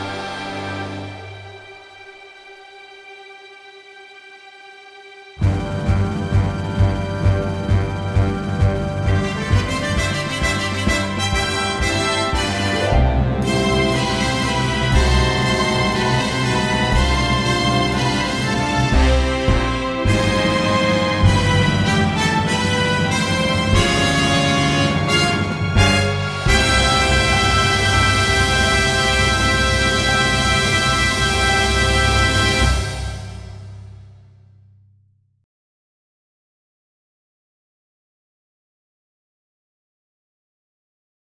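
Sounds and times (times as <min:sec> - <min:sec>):
accompaniment backing track music: 0:00.0 - 0:02.7, 0:05.4 - 0:34.1.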